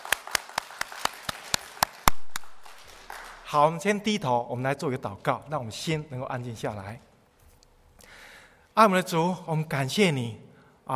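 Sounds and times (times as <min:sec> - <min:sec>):
audience clapping hands: 0:00.0 - 0:03.7
speech: 0:03.5 - 0:07.1, 0:08.8 - 0:10.9.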